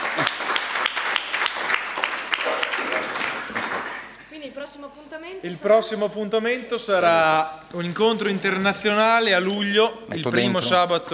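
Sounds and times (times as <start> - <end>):
audience applause: 0.0 - 4.1
speech: 4.7 - 11.1.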